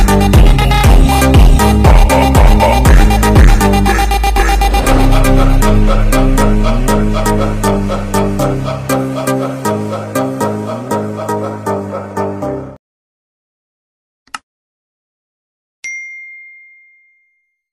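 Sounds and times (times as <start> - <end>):
funk music: 0.0 - 12.8.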